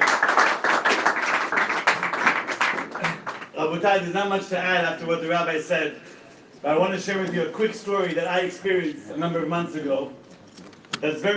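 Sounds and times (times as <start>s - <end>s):
audience applause: 0.0s - 3.6s
speech: 3.6s - 10.2s, 11.0s - 11.3s.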